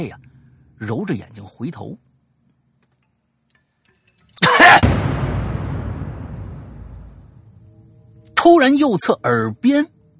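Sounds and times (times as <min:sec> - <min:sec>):
speech: 0:00.0 - 0:00.2, 0:00.8 - 0:02.0, 0:08.4 - 0:10.0
breathy cough: 0:04.4 - 0:04.8.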